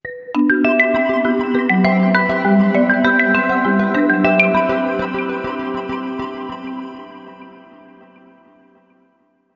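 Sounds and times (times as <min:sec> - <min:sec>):
bells ringing: 0:00.4 - 0:07.3.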